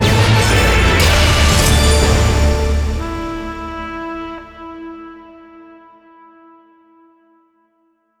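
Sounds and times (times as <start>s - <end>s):
large win sound: 0.0s - 4.0s.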